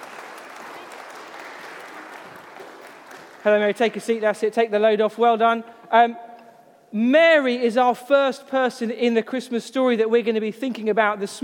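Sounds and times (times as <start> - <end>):
room full of people clapping: 0.0 - 4.2
speech: 3.4 - 6.3, 6.9 - 11.4.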